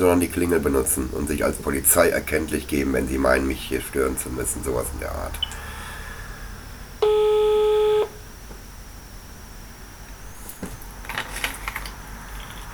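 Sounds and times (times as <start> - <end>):
speech: 0.0 - 5.5
quiet hiss: 0.0 - 12.7
steady telephone line tone: 5.3 - 8.4.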